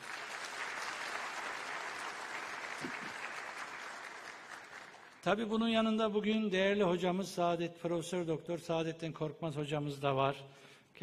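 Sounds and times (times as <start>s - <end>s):
audience applause: 0.0s - 5.2s
speech: 5.2s - 11.0s.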